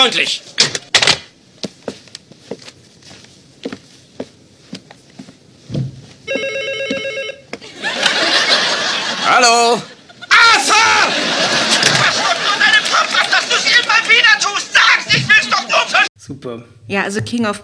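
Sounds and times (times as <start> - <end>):
speech: 0.0 - 0.8, 9.4 - 9.9, 16.4 - 17.6
telephone ringing: 6.3 - 7.6
laughter: 7.6 - 16.1.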